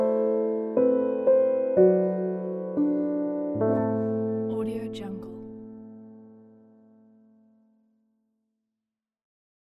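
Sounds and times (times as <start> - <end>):
classical piano piece: 0.0 - 7.4.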